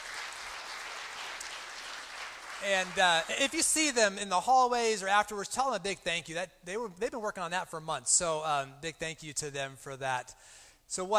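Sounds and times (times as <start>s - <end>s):
audience applause: 0.0s - 3.6s
speech: 2.6s - 11.1s.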